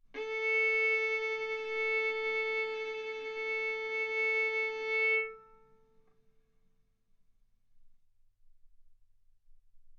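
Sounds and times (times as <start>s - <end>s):
violin bowed arco notes: 0.0s - 6.0s.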